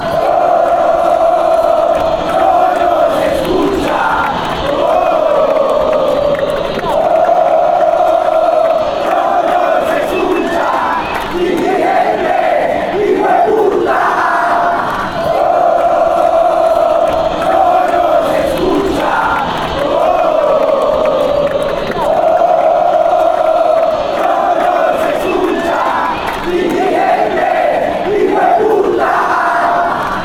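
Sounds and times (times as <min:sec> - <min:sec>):
football fans chanting: 0:00.0 - 0:30.2.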